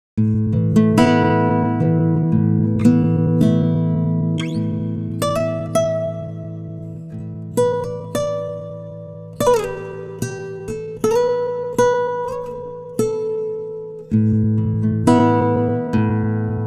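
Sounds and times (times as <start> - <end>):
time-stretched guitar: 0.2 - 16.6.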